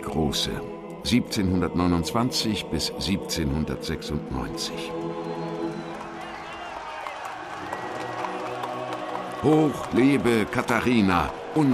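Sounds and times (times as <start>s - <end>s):
speech: 0.1s - 5.1s, 9.4s - 11.7s
large crowd cheering and shouting: 5.3s - 11.7s.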